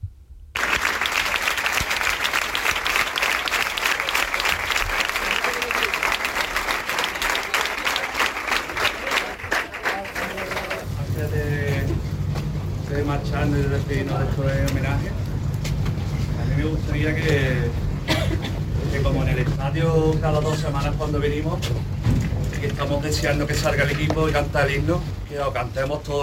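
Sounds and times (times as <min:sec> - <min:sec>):
crowd applause at stadium memorial gathering: 0:00.6 - 0:11.0
low rumble: 0:10.6 - 0:25.6
speech: 0:13.9 - 0:15.2, 0:16.9 - 0:17.6, 0:19.7 - 0:21.9, 0:22.6 - 0:26.2.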